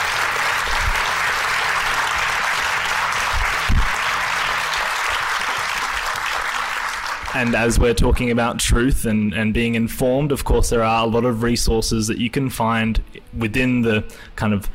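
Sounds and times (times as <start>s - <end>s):
audience applause: 0.0s - 7.9s
speech: 7.4s - 14.7s.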